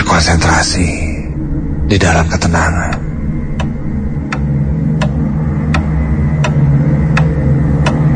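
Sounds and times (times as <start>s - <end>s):
speech: 0.1s - 1.1s, 1.9s - 3.1s
clock ticking: 2.9s - 8.0s.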